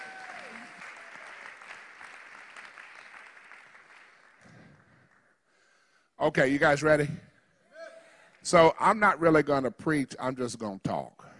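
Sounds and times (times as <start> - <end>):
church congregation applause for online viewers during a morning service: 0.0 - 5.4
speech: 6.2 - 7.3, 8.4 - 11.2.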